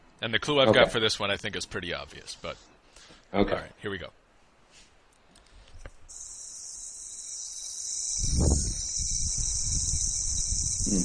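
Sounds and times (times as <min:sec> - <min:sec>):
speech: 0:00.2 - 0:02.7, 0:03.3 - 0:04.2
hard plastic yo-yo spinning on its bearing: 0:06.1 - 0:11.0.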